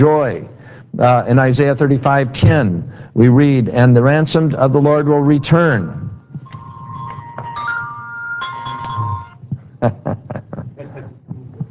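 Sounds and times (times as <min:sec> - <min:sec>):
speech: 0:00.0 - 0:06.0, 0:09.8 - 0:10.2
low hum: 0:05.6 - 0:09.5
pretty ringing chime: 0:06.4 - 0:09.4.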